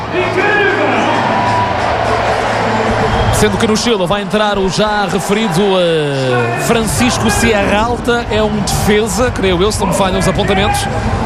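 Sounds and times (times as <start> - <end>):
stadium crowd applauding players: 0.0 - 7.6
large stadium crowd murmuring: 0.0 - 11.2
speech: 3.4 - 11.2.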